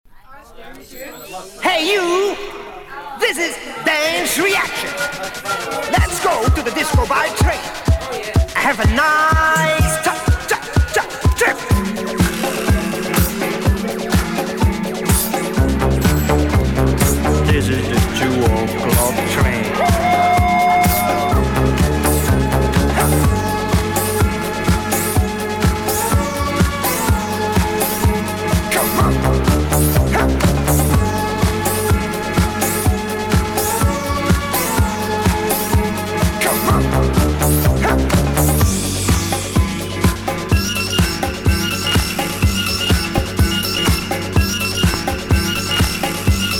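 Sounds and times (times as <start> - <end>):
disco music: 3.3 - 46.5.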